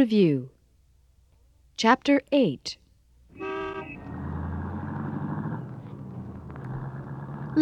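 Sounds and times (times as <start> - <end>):
speech: 0.1 - 0.5, 1.8 - 3.5
car horn honking: 3.3 - 4.4
passing traffic: 3.3 - 7.5
steady rumble of a running engine: 3.3 - 7.5.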